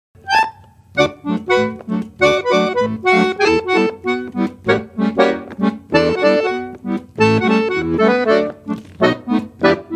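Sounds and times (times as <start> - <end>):
accordion: 0.2 - 9.9.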